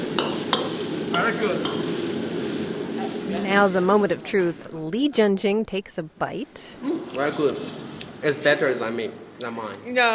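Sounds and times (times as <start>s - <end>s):
chicken stir-frying in a wok: 0.0s - 4.0s
speech: 1.3s - 1.8s, 3.5s - 10.1s.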